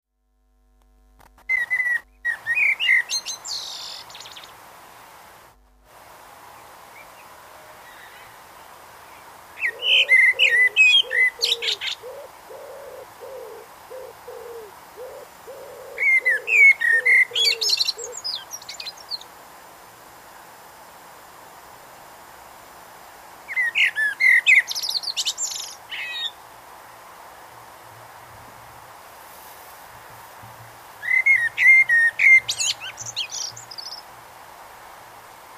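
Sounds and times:
common blackbird singing: 1.5s - 4.5s, 9.1s - 19.3s, 23.5s - 26.4s, 31.0s - 34.0s
dove cooing: 9.6s - 18.3s.

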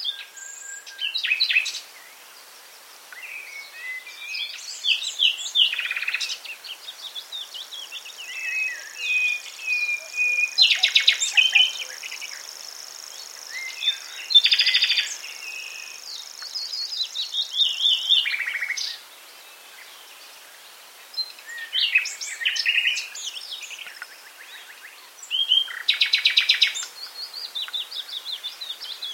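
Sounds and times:
common nightingale singing: 0.0s - 2.4s, 3.1s - 29.1s.

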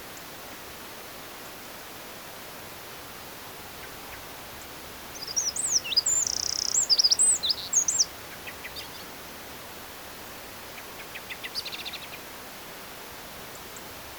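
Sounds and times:
soft background hiss: 0.0s - 14.1s
Eurasian wren singing: 5.1s - 9.1s.

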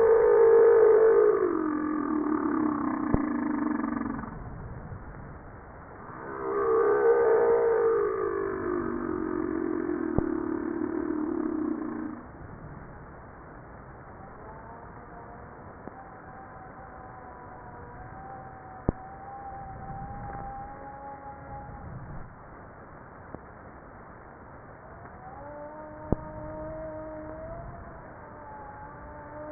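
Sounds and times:
humpback whale harmonic moans: 0.0s - 4.6s, 6.0s - 12.3s, 14.2s - 22.2s, 24.8s - 29.5s.

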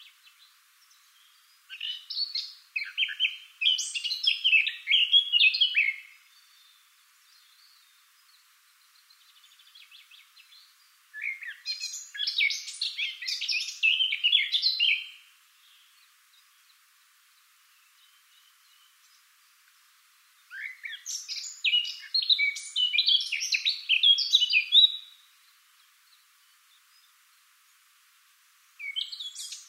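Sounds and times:
Eurasian blackcap singing: 0.0s - 6.6s, 9.4s - 16.2s, 20.4s - 25.2s, 28.8s - 29.6s.

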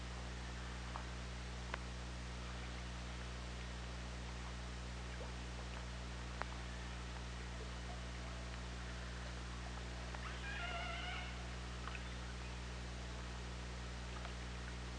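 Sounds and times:
low underwater hum: 0.0s - 14.9s
faint clicks: 5.1s - 7.3s, 14.1s - 14.8s
killer whale call: 10.1s - 12.6s.

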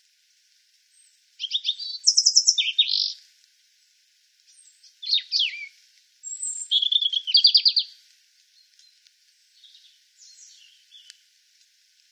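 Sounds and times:
European robin song: 0.9s - 3.2s, 4.5s - 8.0s, 8.6s - 11.2s.

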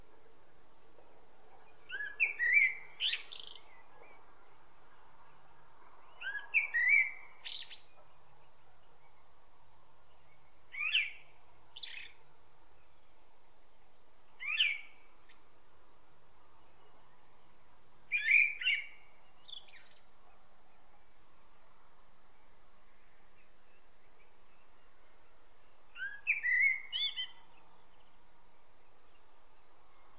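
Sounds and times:
hiss: 0.0s - 30.1s
common blackbird fluted whistle song: 1.6s - 4.6s, 6.0s - 9.2s, 10.1s - 12.2s, 14.4s - 15.7s, 18.1s - 20.1s, 23.0s - 28.2s.

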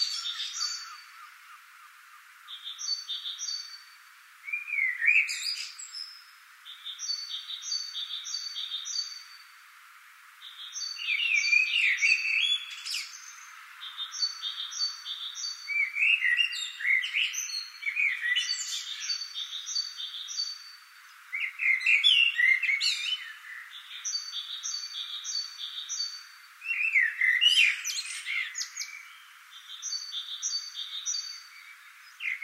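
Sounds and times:
Common blackbird song: 0.0s - 9.6s, 10.4s - 32.4s.

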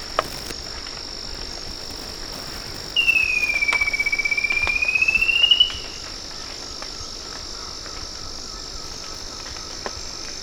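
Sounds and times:
high background drone: 0.0s - 10.4s
bird trill: 2.9s - 6.1s.

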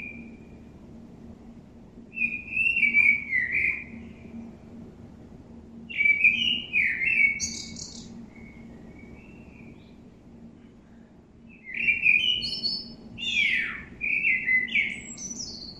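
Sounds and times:
common blackbird Turdus merula song: 0.0s - 0.6s, 2.1s - 4.4s, 5.9s - 10.1s, 10.8s - 15.7s.

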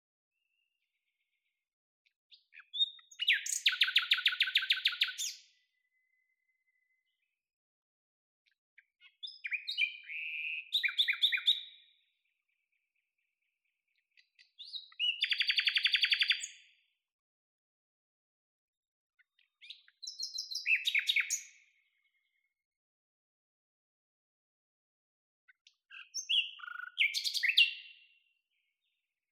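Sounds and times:
common nightingale song: 2.3s - 7.1s, 8.8s - 12.0s, 14.2s - 16.7s, 19.4s - 21.9s, 25.7s - 28.2s.

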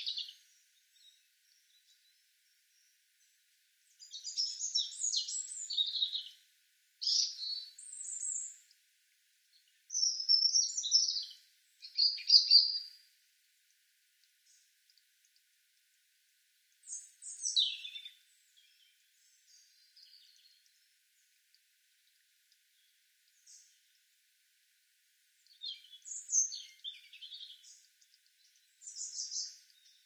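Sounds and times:
European robin singing: 0.0s - 3.0s, 3.8s - 6.4s, 7.0s - 8.6s, 9.6s - 13.0s, 16.8s - 20.7s, 25.4s - 30.0s.

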